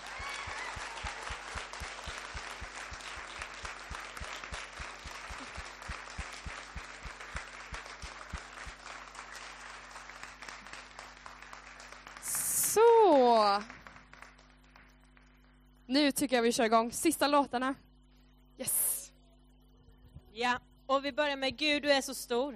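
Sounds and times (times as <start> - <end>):
audience applause in church: 0.0 - 14.8
speech: 15.9 - 17.9, 18.6 - 18.8, 20.5 - 22.5.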